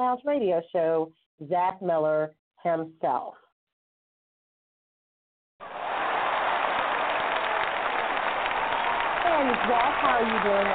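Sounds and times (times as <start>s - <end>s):
speech: 0.0s - 3.4s, 9.3s - 10.7s
audience applause: 5.6s - 10.7s.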